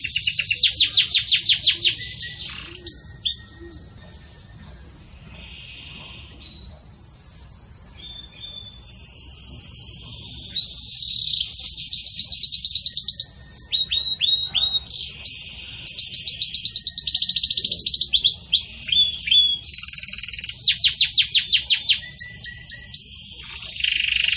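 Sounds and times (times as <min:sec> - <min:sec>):
canary trilling: 0:00.0 - 0:24.3.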